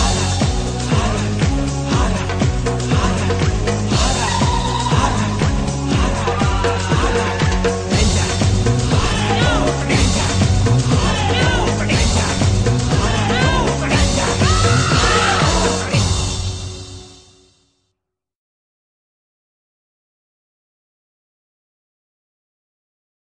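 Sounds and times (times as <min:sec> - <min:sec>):
disco music: 0:00.0 - 0:17.2.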